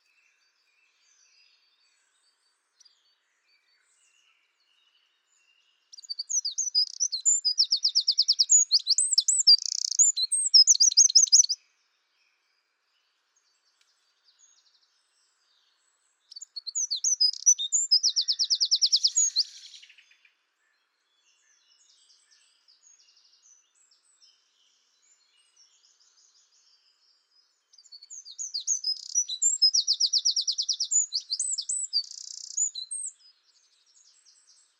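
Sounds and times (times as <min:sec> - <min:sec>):
Eurasian wren song: 0:05.9 - 0:11.6, 0:16.3 - 0:20.1, 0:27.7 - 0:33.2.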